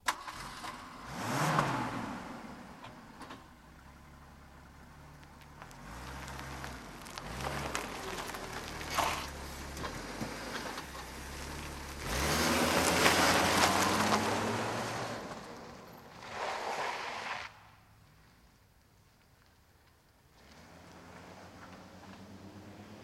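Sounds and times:
car engine starting: 0.0 - 17.6, 20.3 - 23.0.

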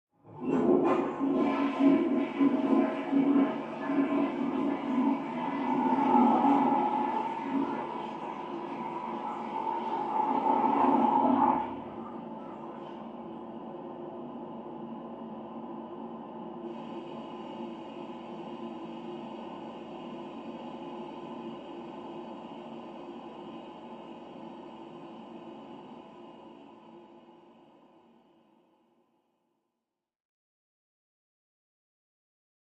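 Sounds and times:
toilet flushing: 0.2 - 13.2
water running in pipes: 0.3 - 13.0.

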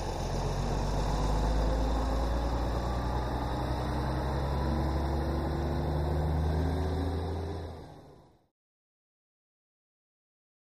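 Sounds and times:
coach bus starting and pulling away: 0.0 - 8.5.

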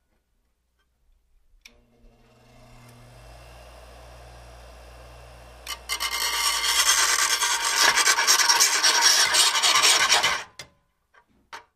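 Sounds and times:
electric grinder grinding: 2.0 - 10.4.

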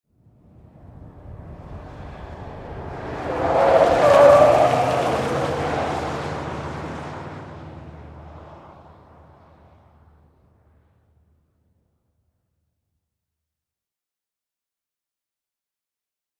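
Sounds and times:
Ford Expedition driving fast around a corner: 0.4 - 11.0.

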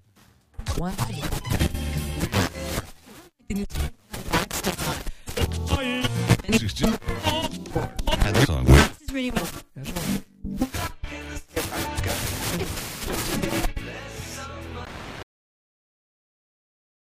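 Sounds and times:
FM broadcast radio tuning static: 0.7 - 10.9, 11.6 - 13.8.

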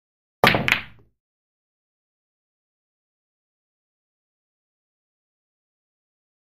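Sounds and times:
billiards cue ball hit: 0.4 - 1.1.

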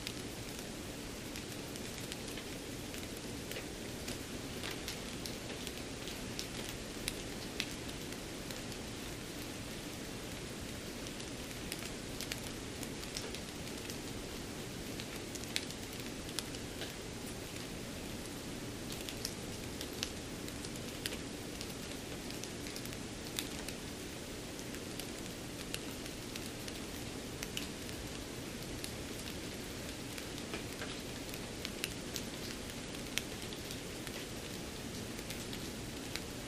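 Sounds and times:
light drizzling rain: 0.0 - 36.4.

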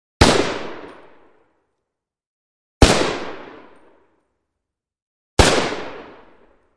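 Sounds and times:
HK91 rifle single shot: 0.2 - 1.3, 2.8 - 3.9, 5.4 - 6.6.

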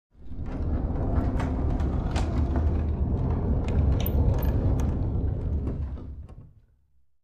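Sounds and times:
dresser rolled on wood: 0.2 - 6.7.

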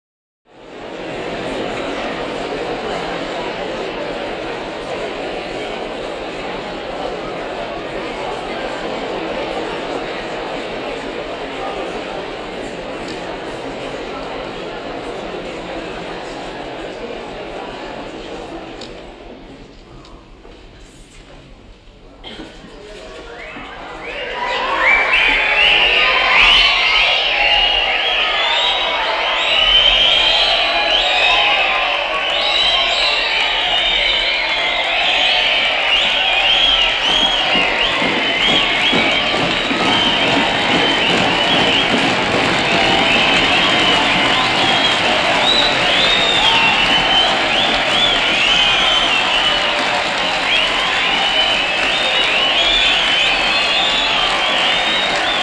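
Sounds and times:
large crowd cheering indoors: 0.5 - 18.9, 23.0 - 55.4.

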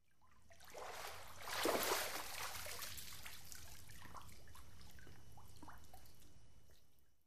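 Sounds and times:
person swimming: 0.7 - 3.2.

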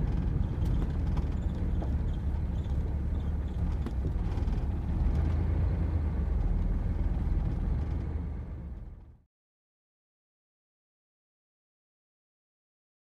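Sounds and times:
Chevy Corvair driving slowly: 0.0 - 9.3.

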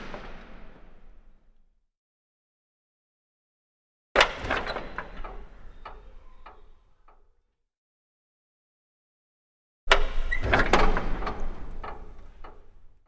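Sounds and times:
medium-sized metal gate opening and closing in a reverberant interior: 4.2 - 7.2, 9.9 - 13.0.

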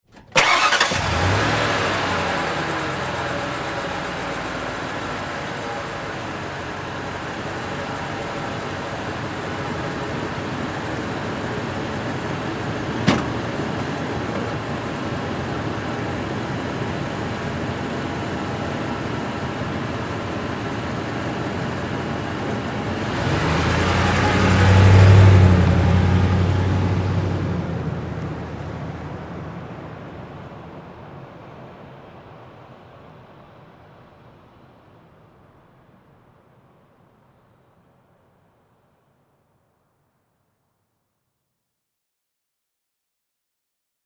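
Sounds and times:
Ford Expedition engine starting and idling: 0.1 - 30.7.

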